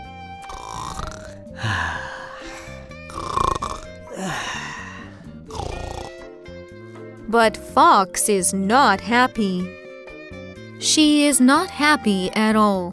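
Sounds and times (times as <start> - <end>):
wolf snoring while sleeping: 0.4 - 4.1, 5.0 - 6.4
speech: 7.3 - 9.8, 10.8 - 12.9.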